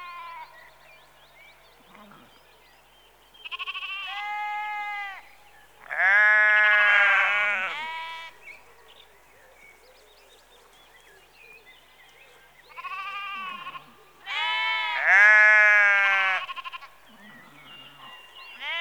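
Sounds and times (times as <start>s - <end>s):
sheep bleating in a rural setting: 3.5s - 5.2s, 5.9s - 8.4s, 12.7s - 17.4s, 18.6s - 18.8s.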